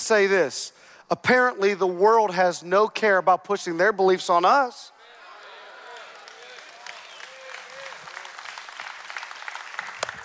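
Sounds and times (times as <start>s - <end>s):
speech: 0.1s - 5.0s
audience clapping: 6.0s - 10.2s.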